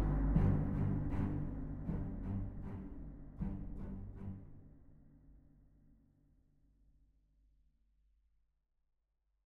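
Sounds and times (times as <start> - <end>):
choir: 0.0 - 4.4
orchestra: 0.0 - 5.0.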